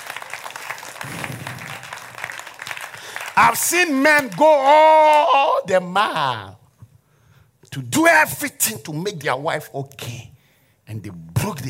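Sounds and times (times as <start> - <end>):
audience clapping hands: 0.0 - 5.3
speech: 3.4 - 6.6, 7.7 - 10.3, 10.9 - 11.6.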